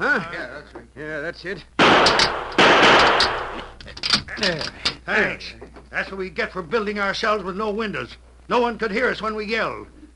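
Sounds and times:
speech: 0.0 - 3.4, 4.4 - 10.0
gunshot shooting off a cell lock: 1.8 - 3.7.

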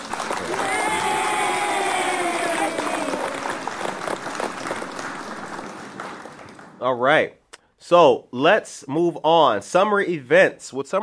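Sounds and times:
audience applause: 0.0 - 6.8
speech: 6.8 - 11.0.

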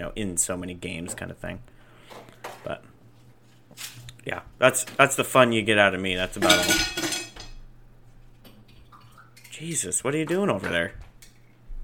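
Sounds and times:
speech: 0.0 - 2.9, 3.8 - 7.0, 9.6 - 11.1
glassware and dishes clinking: 6.4 - 7.6.

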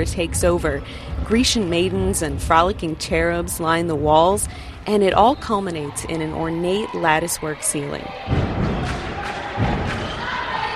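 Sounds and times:
speech: 0.0 - 9.0
LIU Pep Squad stomping in the bleachers at a home game: 8.2 - 10.7.

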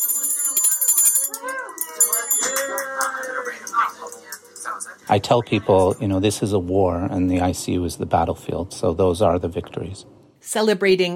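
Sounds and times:
hospital bell ringing: 0.0 - 5.2
people cheering and whooping: 1.3 - 4.0
speech: 3.8 - 11.1.

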